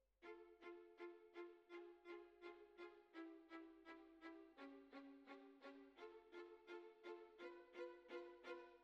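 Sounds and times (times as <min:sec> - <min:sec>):
violas playing: 0:00.2 - 0:08.8.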